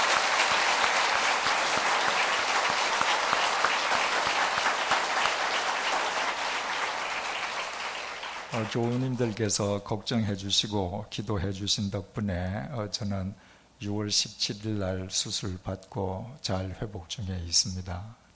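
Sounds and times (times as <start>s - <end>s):
audience applause: 0.0s - 9.4s
speech: 8.6s - 18.2s.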